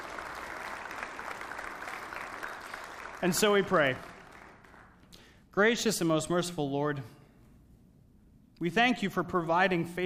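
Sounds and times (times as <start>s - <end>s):
audience clapping: 0.0s - 5.3s
speech: 3.2s - 4.1s, 5.6s - 7.2s, 8.6s - 10.0s.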